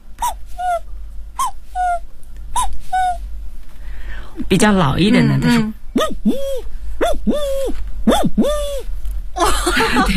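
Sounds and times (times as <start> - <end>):
low steady hum: 0.0 - 10.1
voice imitating a young cuckoo's call: 0.2 - 3.2, 6.0 - 8.9
speech: 4.5 - 10.1
laughter: 9.4 - 10.1.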